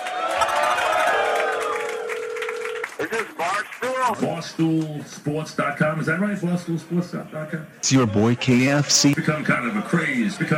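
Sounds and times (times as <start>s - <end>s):
crowd cheering and whooping: 0.0s - 2.5s
clapping: 0.0s - 4.0s
speech: 3.0s - 10.5s.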